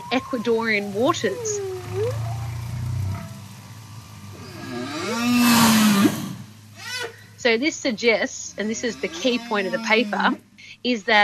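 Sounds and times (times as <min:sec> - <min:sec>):
whale song recorded in French Polynesia: 0:00.0 - 0:10.4
speech: 0:00.1 - 0:02.3, 0:07.5 - 0:11.2.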